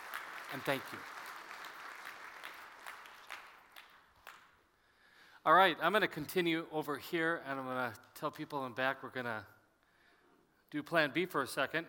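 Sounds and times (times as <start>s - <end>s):
round of applause: 0.0s - 4.6s
speech: 0.5s - 1.1s, 5.5s - 9.6s, 10.7s - 11.8s.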